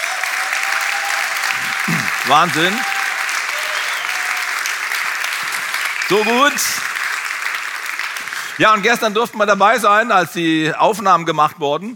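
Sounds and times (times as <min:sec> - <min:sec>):
audience applause for a worship band's team at a live event: 0:00.0 - 0:09.3
speech: 0:02.3 - 0:03.0, 0:06.1 - 0:06.9, 0:08.6 - 0:11.9.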